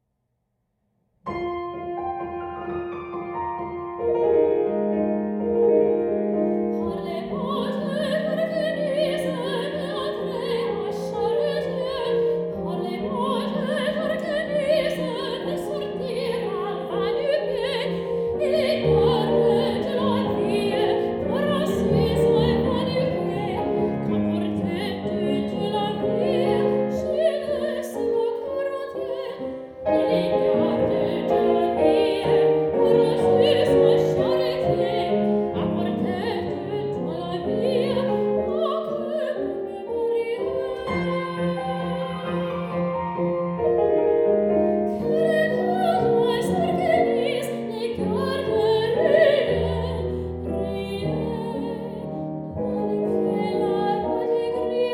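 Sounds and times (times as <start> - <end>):
French chanson: 1.3 - 54.9.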